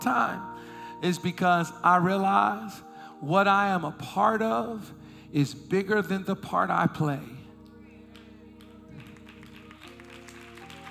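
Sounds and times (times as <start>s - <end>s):
speech: 0.0s - 7.4s
audience clapping: 8.1s - 10.8s.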